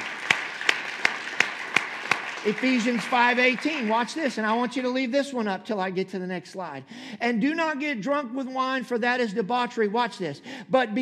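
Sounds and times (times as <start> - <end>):
crowd hand clapping: 0.0 - 4.6
speech: 2.4 - 11.0.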